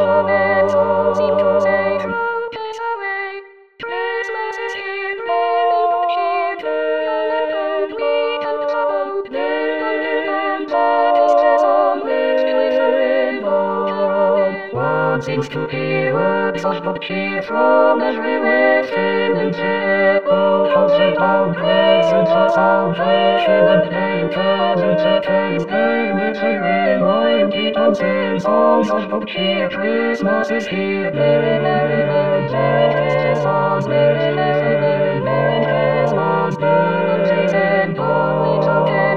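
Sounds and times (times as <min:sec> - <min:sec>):
Christmas carol music: 0:00.0 - 0:39.1.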